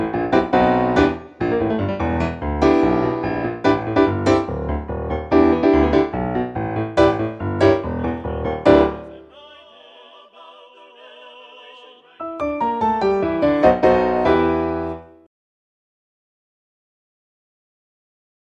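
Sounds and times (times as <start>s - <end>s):
practice track accompaniment: 0.0s - 9.3s, 12.2s - 15.2s.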